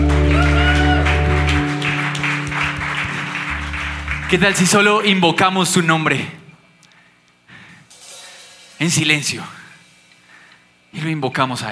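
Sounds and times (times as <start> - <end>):
audience applause: 0.0 - 5.2
speech: 4.3 - 6.4, 8.8 - 9.6, 10.9 - 11.7.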